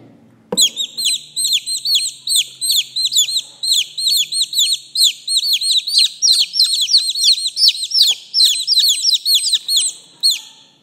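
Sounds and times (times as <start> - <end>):
chicks peeping: 0.6 - 10.8.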